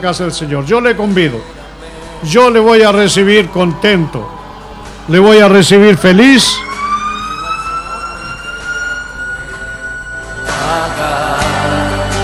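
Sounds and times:
speech: 0.0s - 1.6s, 2.2s - 4.4s, 5.1s - 6.7s
emergency vehicle siren passing on Avenida Concha y Toro: 2.0s - 12.1s.

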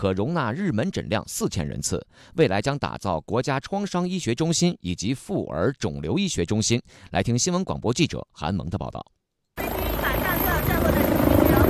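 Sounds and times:
speech: 0.0s - 9.2s
rescue helicopter landing on a hospital helipad: 9.6s - 11.6s.

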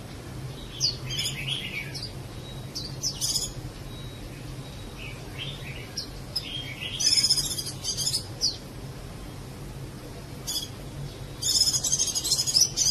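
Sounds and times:
Java sparrow twittering: 0.5s - 9.5s, 10.4s - 12.8s.

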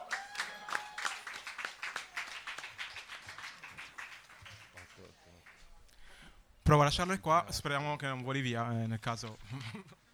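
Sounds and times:
audience applause: 0.0s - 5.6s
speech: 6.7s - 10.0s.

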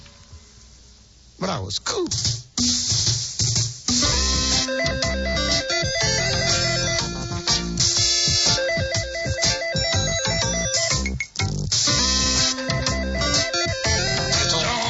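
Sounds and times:
speech: 1.4s - 3.0s
phone ringing with a continuous musical ringtone: 4.0s - 14.8s.

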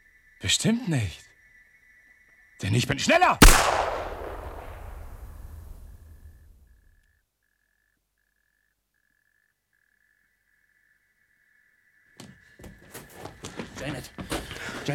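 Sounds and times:
speech: 0.4s - 1.2s, 2.6s - 3.8s
sharp noises: 3.4s - 5.8s
revolver gunshot in a radio drama: 3.4s - 6.1s.

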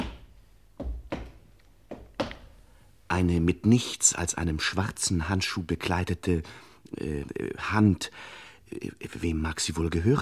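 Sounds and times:
footsteps approaching the couch: 0.0s - 2.6s
speech: 3.2s - 10.2s.

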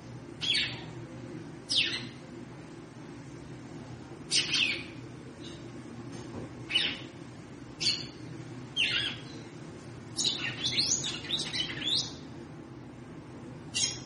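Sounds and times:
female red-cowled cardinal chirping: 0.4s - 0.9s, 1.7s - 2.2s, 4.3s - 5.6s, 6.7s - 7.2s, 7.8s - 8.2s, 8.8s - 9.5s, 10.2s - 12.2s, 13.7s - 14.0s.

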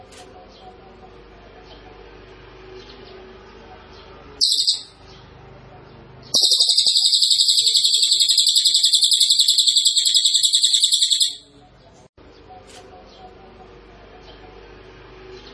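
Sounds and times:
small minivet song: 4.4s - 5.0s, 6.4s - 11.5s.

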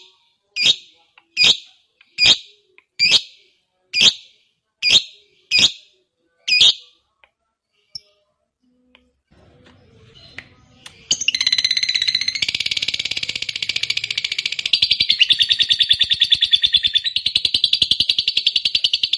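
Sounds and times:
fighter-type lovebird giving harsh shrill chirps and buzzy chatter: 0.6s - 3.3s, 4.9s - 5.9s, 6.5s - 6.9s, 11.0s - 19.1s.

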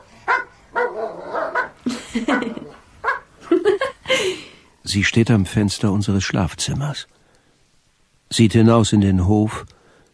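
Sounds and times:
dogs barking: 0.0s - 3.4s
speech: 4.9s - 7.2s, 8.3s - 9.8s.

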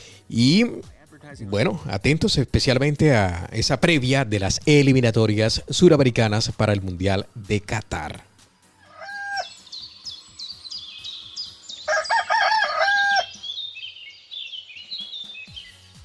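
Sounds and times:
speech: 0.3s - 8.3s
rooster crowing: 8.8s - 9.6s, 11.7s - 13.5s.

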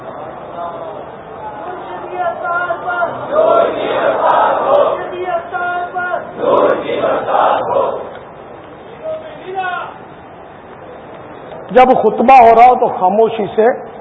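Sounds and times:
crowd chanting religious slogans at an Islamic religious gathering: 3.0s - 8.3s
speech: 11.7s - 13.9s.

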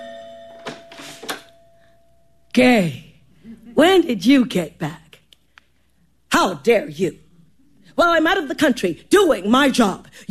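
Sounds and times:
doorbell chiming at home: 0.0s - 2.3s
speech: 2.6s - 3.1s, 3.8s - 5.0s, 6.4s - 7.2s, 8.0s - 10.2s.

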